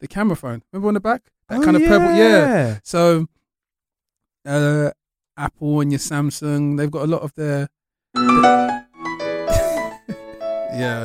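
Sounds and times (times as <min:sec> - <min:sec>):
speech: 0:00.0 - 0:03.4, 0:04.4 - 0:08.8, 0:10.7 - 0:11.0
Nokia polyphonic mobile phone ringtone: 0:08.2 - 0:09.6.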